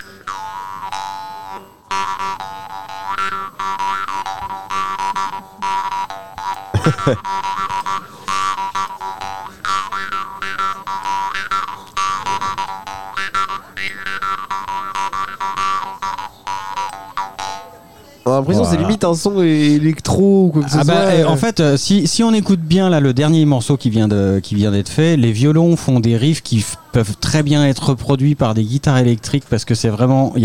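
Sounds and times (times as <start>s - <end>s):
jaw harp buzzing twang: 0.0s - 17.9s
laughter: 4.9s - 5.9s, 6.6s - 8.4s, 18.5s - 19.1s, 20.6s - 21.5s
speech: 6.9s - 7.5s, 18.4s - 30.4s.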